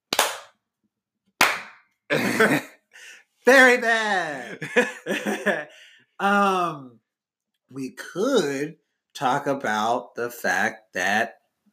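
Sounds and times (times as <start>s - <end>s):
slow hand claps: 0.0s - 0.6s, 1.4s - 1.8s
speech: 2.1s - 2.7s, 3.4s - 7.0s, 7.7s - 11.4s
laughter: 4.3s - 5.8s.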